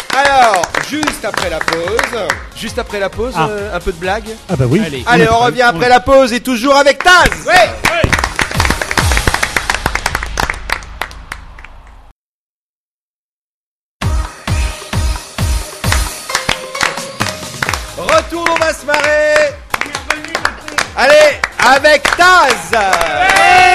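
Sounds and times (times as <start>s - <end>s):
audience clapping rhythmically at a comedy show: 0.0s - 3.6s, 6.8s - 12.1s, 15.6s - 23.7s
speech: 0.2s - 8.3s.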